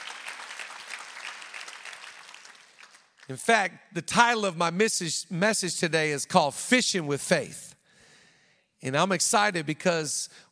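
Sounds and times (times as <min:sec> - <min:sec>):
crowd clapping: 0:00.0 - 0:03.5
speech: 0:03.3 - 0:07.7, 0:08.8 - 0:10.5.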